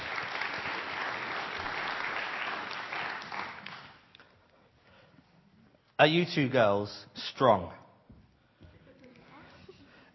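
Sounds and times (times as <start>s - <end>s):
round of applause: 0.0s - 4.2s
speech: 6.0s - 7.8s.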